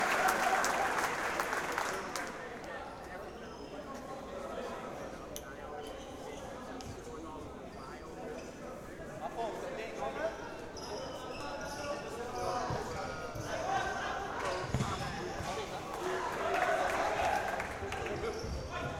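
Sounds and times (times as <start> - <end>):
men's league futsal match ambience: 0.2 - 18.9.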